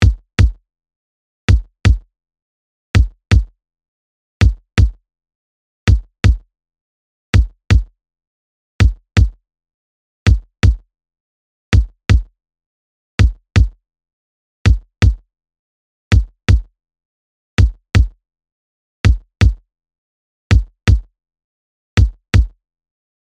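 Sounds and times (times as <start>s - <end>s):
dry kick drum: 0.0s - 0.6s, 1.5s - 2.1s, 3.0s - 3.5s, 4.4s - 5.0s, 5.9s - 6.4s, 7.4s - 7.9s, 8.8s - 9.4s, 10.3s - 10.8s, 11.8s - 12.3s, 13.2s - 13.8s, 14.7s - 15.2s, 16.1s - 16.7s, 17.6s - 18.2s, 19.1s - 19.6s, 20.5s - 21.1s, 22.0s - 22.6s.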